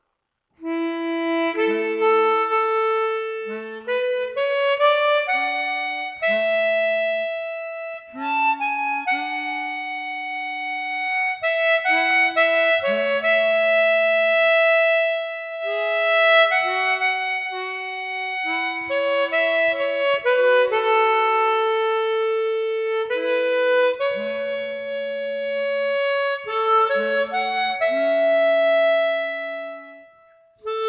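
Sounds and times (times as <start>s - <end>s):
harmonica folk tune: 0.6s - 30.8s.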